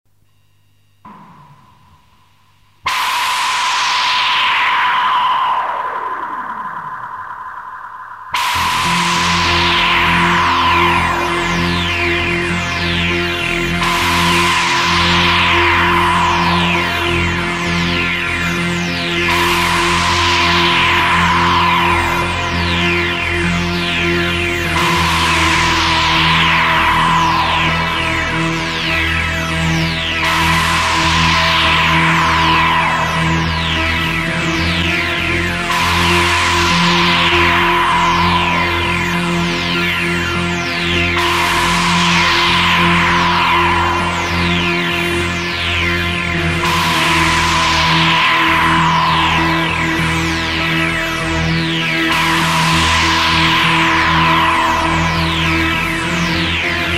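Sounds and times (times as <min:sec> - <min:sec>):
electronic music: 0:01.1 - 0:56.9.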